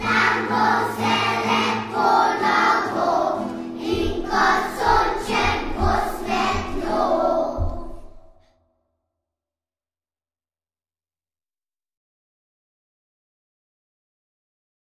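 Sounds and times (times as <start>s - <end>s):
an anthem: 0.0s - 8.4s.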